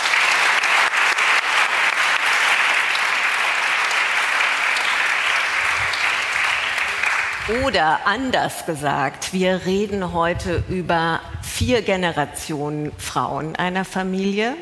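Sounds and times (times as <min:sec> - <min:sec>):
audience applause: 0:00.0 - 0:07.8
speech: 0:07.5 - 0:14.6.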